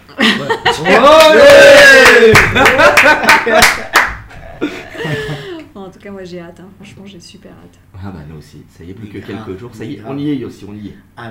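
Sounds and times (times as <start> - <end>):
laughter: 0.1 - 1.1, 2.4 - 5.6
speech: 0.1 - 4.0, 4.6 - 11.2
crowd cheering and whooping: 0.8 - 4.0
hands clapping: 0.9 - 4.4.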